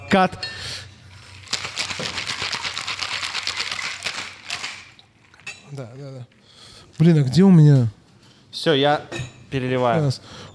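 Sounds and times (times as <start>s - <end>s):
speech: 0.1s - 0.9s, 5.7s - 6.4s, 7.0s - 10.5s
cocktail shaker rattling with ice against metal: 1.1s - 5.5s.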